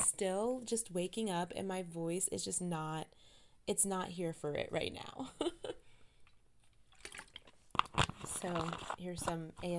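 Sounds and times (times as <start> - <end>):
speech: 0.2 - 5.6, 8.4 - 9.7
sharp plastic crunch: 6.9 - 9.7
water bottle handling noises: 6.9 - 9.7.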